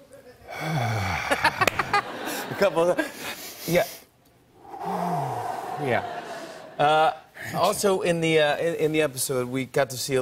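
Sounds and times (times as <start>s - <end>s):
man imitating heavy laboured breathing of someone with food poisoning: 0.5s - 1.6s, 4.6s - 6.0s
laughter: 1.2s - 3.2s, 5.4s - 7.1s
speech: 2.6s - 4.0s, 5.8s - 6.2s, 6.8s - 10.1s.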